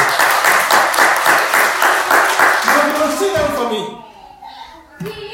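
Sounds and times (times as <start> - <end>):
audience applause: 0.0 - 3.7.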